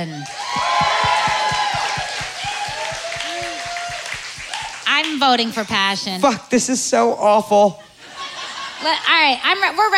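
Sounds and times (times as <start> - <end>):
speech: 0.0 - 1.0, 5.0 - 7.9, 8.8 - 9.9
audience applause voting: 0.1 - 5.1.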